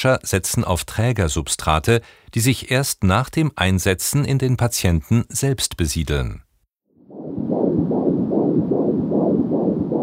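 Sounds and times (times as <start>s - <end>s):
speech: 0.0s - 6.5s
fetal heartbeat picked up by a Doppler monitor: 7.1s - 10.0s.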